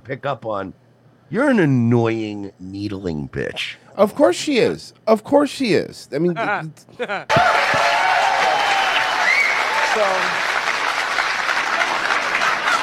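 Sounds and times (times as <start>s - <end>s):
speech: 0.0s - 8.0s, 10.0s - 10.5s
crowd applauding at a Donald Trump speech: 7.3s - 12.8s
crowd laughing at a Trump speech: 11.4s - 12.8s.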